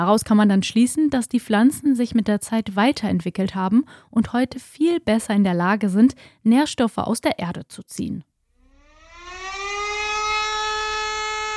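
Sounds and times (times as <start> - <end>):
speech: 0.0 - 8.3
school fire alarm siren: 8.6 - 11.5.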